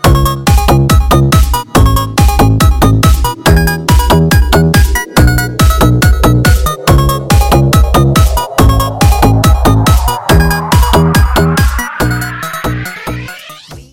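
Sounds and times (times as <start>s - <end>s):
very strong Vietnamese club dance music: 0.2s - 13.8s.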